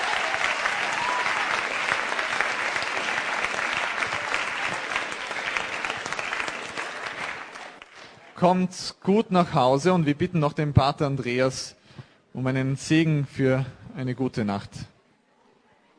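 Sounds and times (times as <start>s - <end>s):
audience applause: 0.0s - 8.4s
speech: 8.4s - 11.8s, 12.4s - 14.9s.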